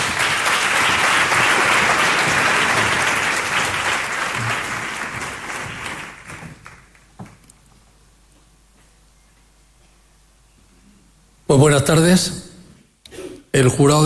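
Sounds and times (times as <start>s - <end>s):
audience applause: 0.0s - 7.2s
speech: 11.5s - 12.4s, 13.6s - 14.0s.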